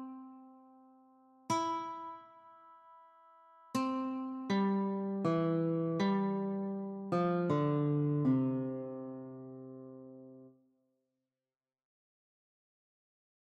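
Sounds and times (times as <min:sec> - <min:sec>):
guitar notes: 0:00.0 - 0:00.9, 0:01.5 - 0:10.5.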